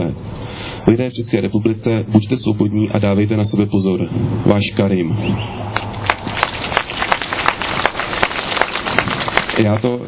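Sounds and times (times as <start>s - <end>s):
speech: 0.8s - 5.7s, 9.6s - 10.0s
crowd applause: 5.7s - 10.0s.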